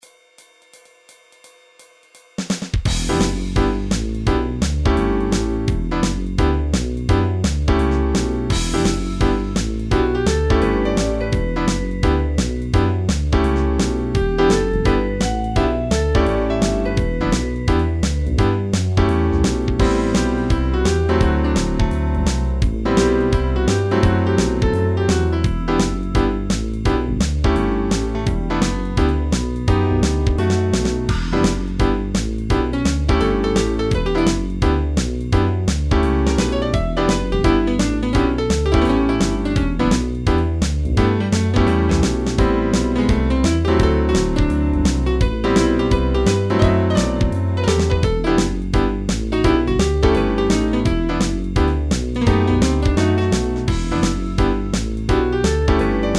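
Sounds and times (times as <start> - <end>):
bluesy jazz MIDI music: 2.9 - 56.1.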